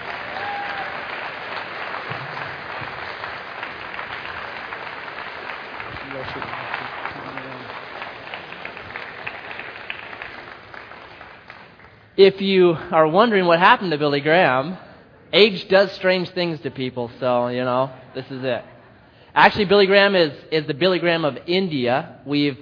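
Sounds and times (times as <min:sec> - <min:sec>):
audience applause: 0:00.0 - 0:12.1
speech: 0:12.2 - 0:18.7, 0:19.4 - 0:22.6.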